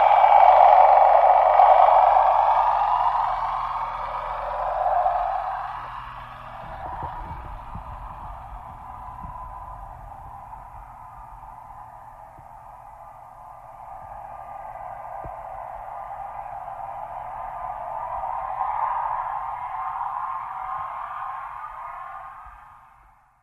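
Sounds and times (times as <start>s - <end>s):
torpedo jet passing by: 0.0s - 9.2s.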